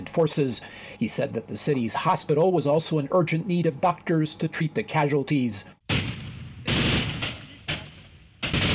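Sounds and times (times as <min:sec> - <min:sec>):
speech: 0:00.0 - 0:05.8
gunfire exchanged between Kurdish militia and Syrian government forces in a city: 0:05.9 - 0:08.7.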